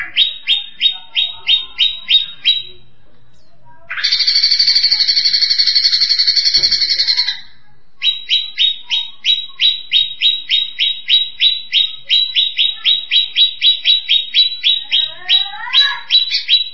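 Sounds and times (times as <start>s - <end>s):
grey-cheeked bulbul chirping song: 0.0s - 16.7s.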